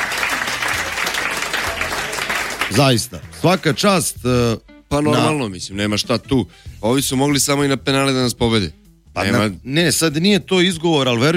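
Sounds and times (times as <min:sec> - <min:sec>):
applause for Serbia's national futsal team: 0:00.0 - 0:03.8
speech: 0:02.7 - 0:11.3.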